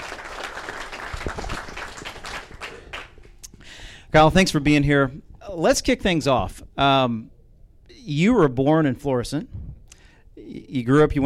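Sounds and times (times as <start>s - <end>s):
crowd applause welcoming a guest: 0.0s - 3.3s
speech: 4.1s - 7.3s, 8.0s - 9.6s, 10.5s - 11.2s.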